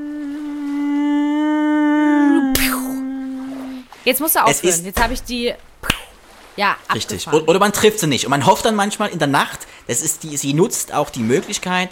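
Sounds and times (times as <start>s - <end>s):
voice imitating a mosquito: 0.0s - 3.9s
sharp smacking burst: 2.6s - 2.9s, 5.8s - 6.2s
speech: 4.0s - 5.7s, 6.6s - 11.9s.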